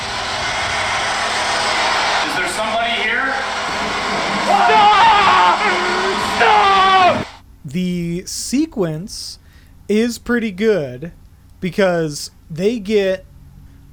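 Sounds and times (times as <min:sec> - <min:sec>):
spirit box radio static hiss: 0:00.0 - 0:09.4
speech: 0:07.7 - 0:13.3.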